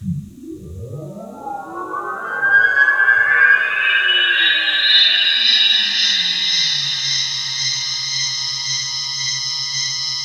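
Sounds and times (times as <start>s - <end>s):
DREAMFILTER keys synth: 0.0s - 8.6s.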